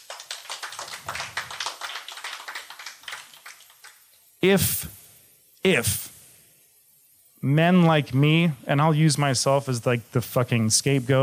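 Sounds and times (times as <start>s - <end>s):
audience applause: 0.0s - 4.0s
speech: 4.4s - 5.0s, 5.6s - 6.1s, 7.4s - 11.2s.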